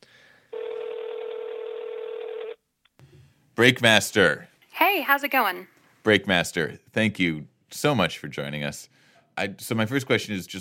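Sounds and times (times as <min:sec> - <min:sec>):
buzzy electronic telephone tone: 0:00.5 - 0:02.6
speech: 0:03.6 - 0:10.5.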